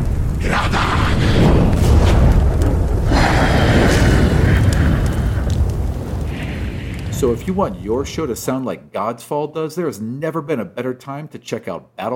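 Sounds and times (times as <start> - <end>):
deep continuous rumble: 0.0 - 8.6
fire elemental combat flame bursts: 0.0 - 8.6
speech: 7.2 - 12.1.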